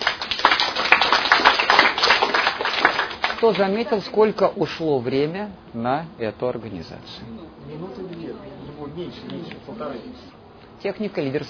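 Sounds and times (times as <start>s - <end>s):
audience applause: 0.0s - 3.9s
speech: 3.4s - 11.4s.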